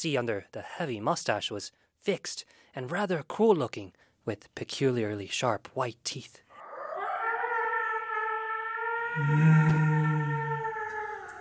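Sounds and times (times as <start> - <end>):
speech: 0.0 - 6.4, 9.2 - 10.3
wolves howling: 6.6 - 11.3.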